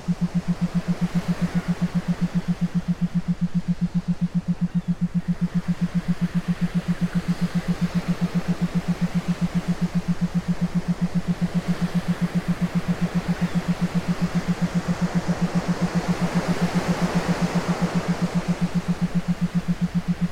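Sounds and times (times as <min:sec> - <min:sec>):
theta binaural beats for meditation: 0:00.0 - 0:20.3.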